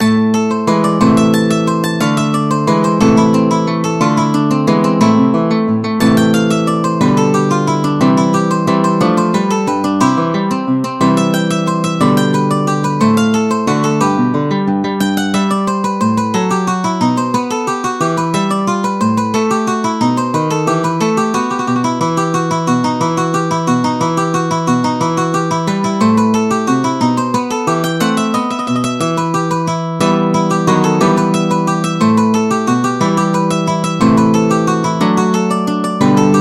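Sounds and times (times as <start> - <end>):
harpsichord suite movement in B minor: 0.0 - 36.3.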